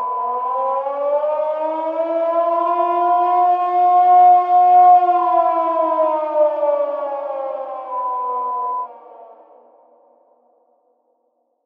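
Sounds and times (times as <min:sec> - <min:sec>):
air raid siren: 0:00.0 - 0:10.5.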